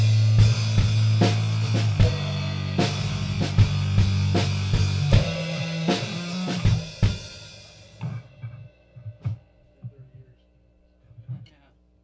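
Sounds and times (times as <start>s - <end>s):
band jamming at a live gig: 0.0s - 9.4s.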